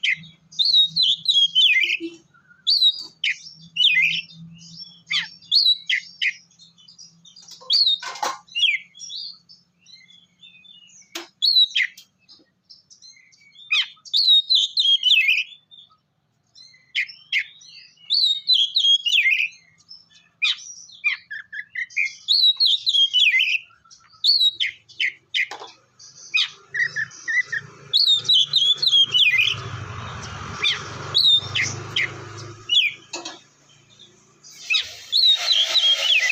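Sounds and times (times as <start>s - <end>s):
Oriental magpie-robin song: 0.0s - 36.3s.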